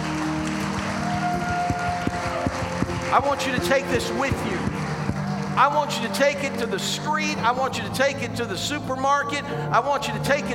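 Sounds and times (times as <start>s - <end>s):
audience hand clap of praise: 0.0s - 6.7s
speech: 3.1s - 4.7s, 5.6s - 10.5s.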